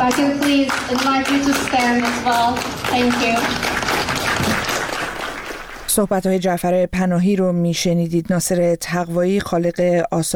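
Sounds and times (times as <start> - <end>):
applause in honour of Iranian filmmaker Nasser Taghvaei: 0.0 - 6.1
speech: 0.1 - 4.5, 6.0 - 10.3.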